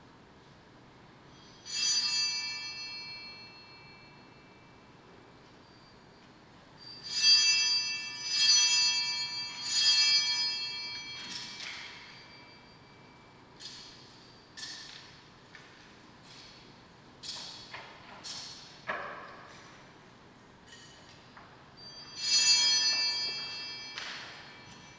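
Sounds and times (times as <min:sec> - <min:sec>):
bells ringing: 0:01.3 - 0:14.9, 0:21.7 - 0:24.9.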